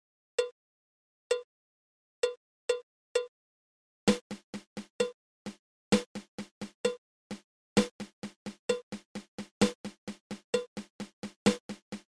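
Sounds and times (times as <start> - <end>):
triple paradiddle drum rudiment: 4.1 - 12.0.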